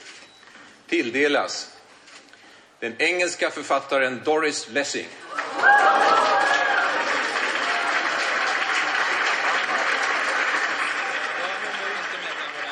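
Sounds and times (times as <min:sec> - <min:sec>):
speech: 0:00.9 - 0:01.8, 0:02.8 - 0:06.0
crowd applause: 0:05.2 - 0:12.6.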